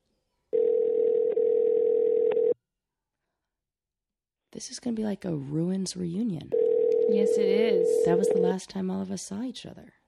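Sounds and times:
phone ring tone on a call to a cast member: 0:00.6 - 0:02.6, 0:06.5 - 0:08.5
speech: 0:04.6 - 0:10.0.

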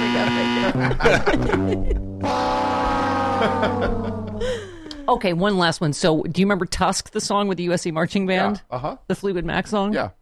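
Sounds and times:
buzzer: 0:00.0 - 0:00.8, 0:02.2 - 0:03.7
laughter: 0:00.0 - 0:05.2
speech: 0:00.2 - 0:02.4, 0:03.4 - 0:04.0, 0:05.1 - 0:10.2.

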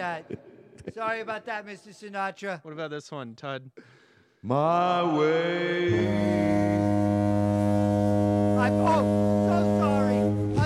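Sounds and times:
speech: 0:00.0 - 0:07.4, 0:08.6 - 0:09.3
ship's horn blast: 0:05.9 - 0:10.6.

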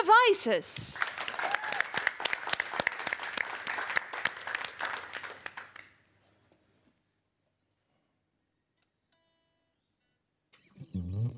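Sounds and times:
speech: 0:00.3 - 0:01.0
audience applause: 0:01.0 - 0:06.0.

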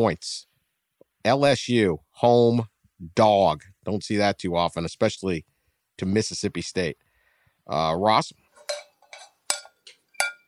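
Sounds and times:
speech: 0:00.0 - 0:00.5, 0:01.2 - 0:07.0, 0:07.7 - 0:08.8
cowbell clanking: 0:08.6 - 0:10.4.

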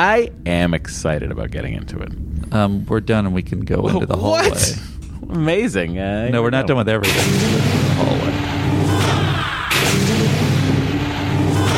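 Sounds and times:
speech: 0:00.0 - 0:08.8
steady low hum: 0:00.0 - 0:11.7
starship hailing electronic sound cue: 0:06.6 - 0:11.7.

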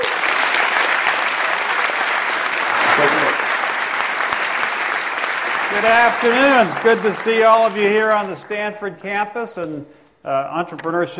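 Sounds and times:
audience applause welcoming Steve Case at a Stanford Entrepreneurship Week event: 0:00.0 - 0:08.9
speech: 0:05.8 - 0:11.1.

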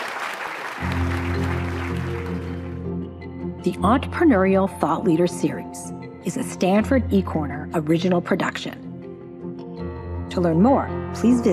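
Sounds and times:
audience applause: 0:00.0 - 0:02.9
sustained low-pitched music: 0:00.8 - 0:11.5
speech: 0:03.6 - 0:08.8, 0:10.4 - 0:11.5.

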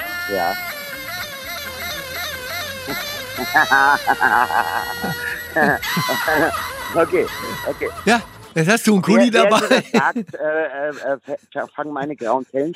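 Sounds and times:
yodeling novelty pen playing a yodel: 0:00.0 - 0:08.5
speech: 0:00.3 - 0:00.8, 0:02.9 - 0:12.7
laughter: 0:02.9 - 0:10.4.

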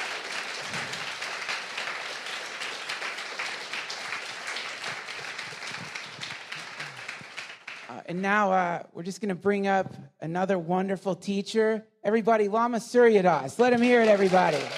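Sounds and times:
audience applauding a speaker after his talk: 0:00.0 - 0:08.0, 0:13.6 - 0:14.7
speech: 0:08.1 - 0:14.7.

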